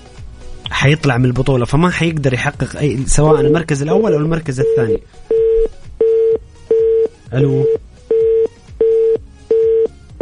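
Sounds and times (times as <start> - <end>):
speech: 0.8 - 6.5, 7.3 - 7.8
phone line busy tone after a dropped call: 3.3 - 3.6, 4.6 - 10.2.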